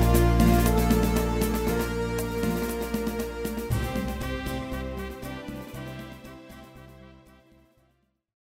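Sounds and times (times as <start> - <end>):
drum: 0.0 - 6.0.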